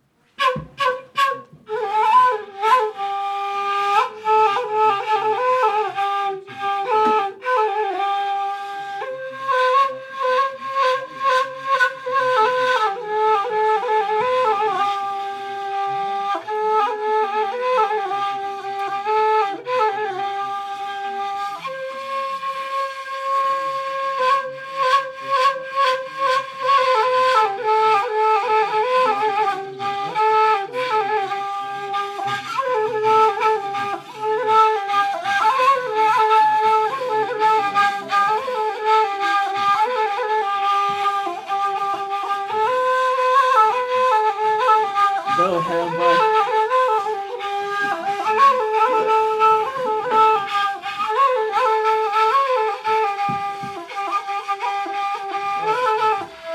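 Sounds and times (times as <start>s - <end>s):
flutes playing a traditional Tunisian tune: 0.3s - 56.5s.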